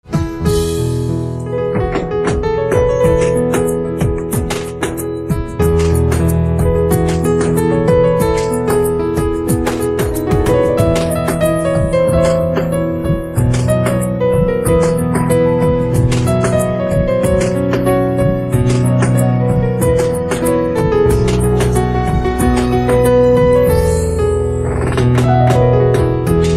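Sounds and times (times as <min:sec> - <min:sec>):
instrumental piano ringtone: 0:00.1 - 0:26.5.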